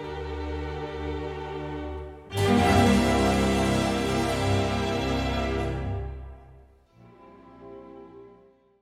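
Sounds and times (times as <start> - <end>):
concerto grosso in G minor larghetto e affettuoso: 0.0 - 6.6.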